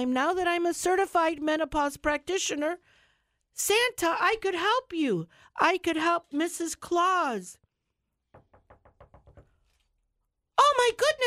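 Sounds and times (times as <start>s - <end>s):
speech: 0.0s - 3.0s, 3.6s - 7.6s, 10.6s - 11.2s
knocking on a radio studio door: 8.3s - 9.6s.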